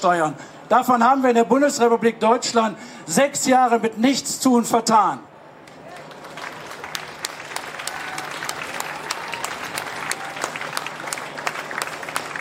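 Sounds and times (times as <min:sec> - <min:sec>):
speech: 0:00.0 - 0:05.3
audience applause: 0:05.9 - 0:12.3.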